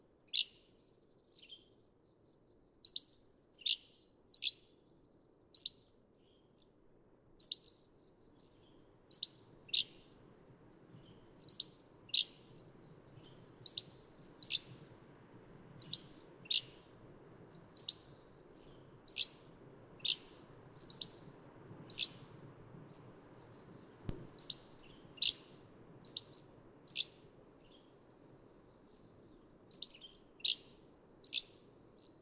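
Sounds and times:
Hammond's flycatcher calling with sharp chips and burry notes: 0.3s - 0.6s, 7.4s - 7.6s, 9.1s - 10.0s, 11.2s - 14.8s, 15.8s - 16.8s, 17.8s - 18.2s, 19.1s - 19.4s, 20.0s - 22.3s, 23.2s - 27.3s, 29.7s - 31.6s.

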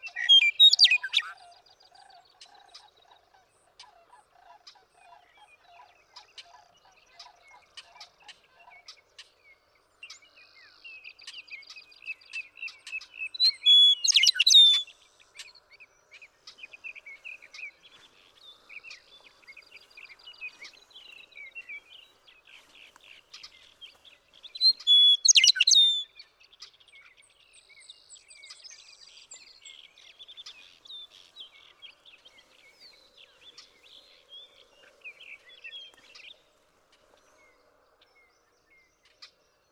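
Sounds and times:
Western meadowlark singing: 0.0s - 1.4s, 12.5s - 14.9s, 16.6s - 36.4s
small birds chirping: 0.0s - 3.4s, 9.0s - 39.6s.

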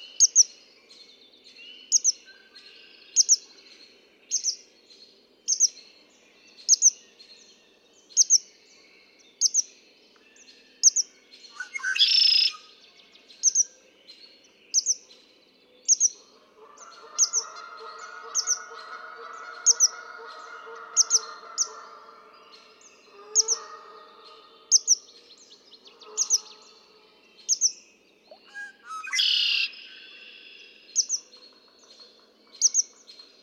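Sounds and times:
red-winged blackbird raspy trill: 10.9s - 12.7s, 15.9s - 25.1s, 25.8s - 26.8s, 27.5s - 31.3s.

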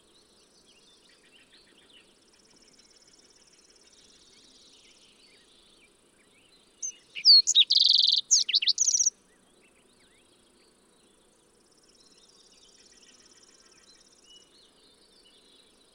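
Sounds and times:
fox sparrow singing: 6.8s - 9.1s.

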